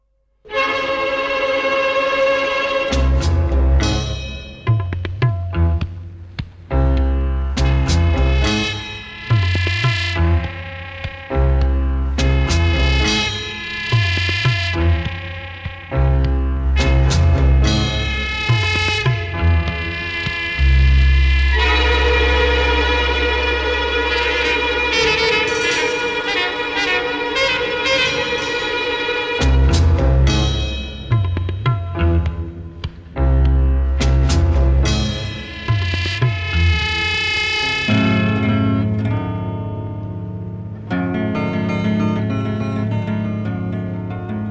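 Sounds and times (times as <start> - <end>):
instrumental theme music: 0.4 - 44.5.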